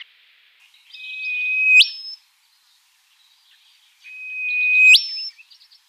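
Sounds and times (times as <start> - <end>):
rufous whistler in a Canberra garden: 1.1 - 2.2, 4.1 - 5.3.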